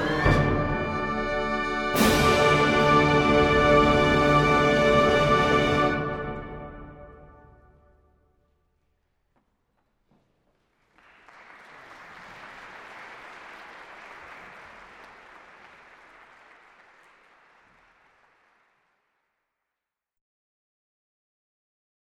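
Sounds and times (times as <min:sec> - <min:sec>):
fanfare: 0:00.0 - 0:07.4.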